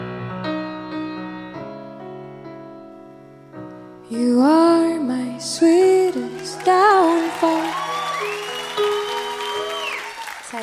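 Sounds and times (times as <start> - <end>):
speech: 4.1 - 7.7
audience clapping after song: 5.8 - 10.6.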